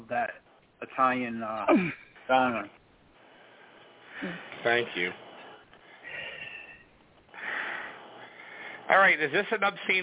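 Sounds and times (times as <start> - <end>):
speech: 0.1 - 2.8, 4.2 - 5.2, 8.9 - 10.0
breathing into the microphone: 3.2 - 8.9.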